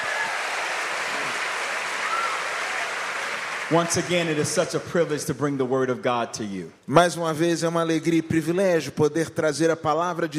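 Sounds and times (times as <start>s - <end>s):
audience applause: 0.0s - 4.8s
speech: 3.7s - 10.3s.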